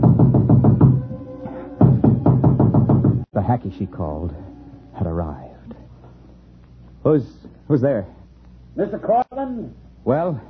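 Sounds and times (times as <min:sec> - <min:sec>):
knock on a door: 0:00.0 - 0:01.0, 0:01.8 - 0:03.3
speech: 0:03.5 - 0:05.5, 0:07.0 - 0:08.2, 0:08.8 - 0:10.4.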